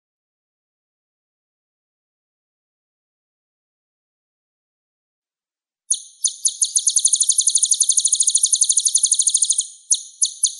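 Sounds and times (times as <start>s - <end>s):
olive-backed sunbird singing high rapid trill: 5.9s - 10.5s.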